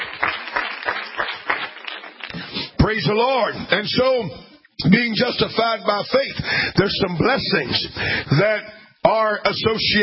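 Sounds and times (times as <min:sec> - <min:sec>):
church congregation clapping in unison: 0:00.0 - 0:02.8
speech: 0:02.8 - 0:10.0.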